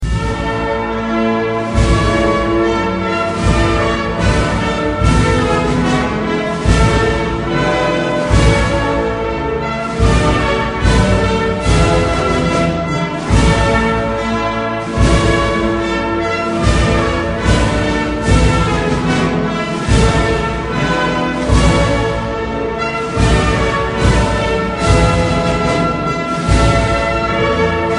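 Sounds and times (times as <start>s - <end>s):
national anthem: 0.0s - 27.9s.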